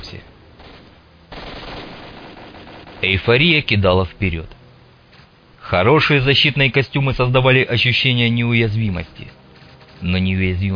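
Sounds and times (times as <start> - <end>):
gunfire: 0.6 - 3.2
speech: 3.0 - 4.6, 5.7 - 9.4, 10.0 - 10.7.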